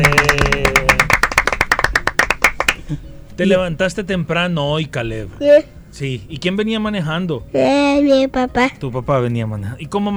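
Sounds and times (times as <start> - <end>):
applause: 0.0 - 2.9
speech: 2.9 - 10.1.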